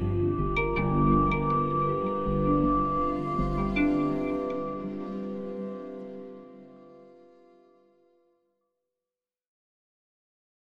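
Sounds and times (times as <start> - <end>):
choir: 0.0 - 8.1
strings: 0.0 - 8.2.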